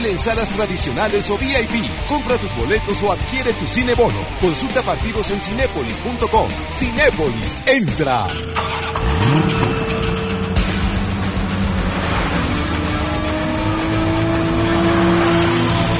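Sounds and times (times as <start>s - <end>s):
speech: 0.0s - 9.6s
sports car engine revving: 8.3s - 15.9s.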